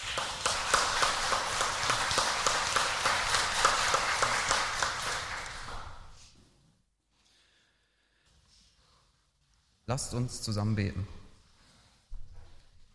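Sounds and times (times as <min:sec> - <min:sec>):
applause: 0:00.0 - 0:06.2
speech: 0:09.9 - 0:11.2.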